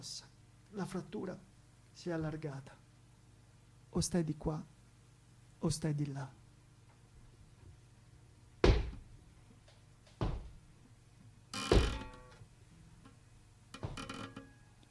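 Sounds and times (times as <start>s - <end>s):
speech: 0.0s - 2.8s, 3.9s - 4.7s, 5.6s - 6.4s
wooden parquet floor creaking under slow steps: 11.5s - 12.4s, 13.8s - 14.6s.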